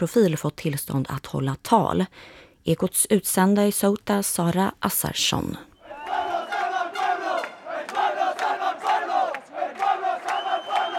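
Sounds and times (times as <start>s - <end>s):
speech: 0.0s - 5.7s
crowd chanting anti-fascist slogans on Plaza de los Reyes: 5.8s - 10.9s.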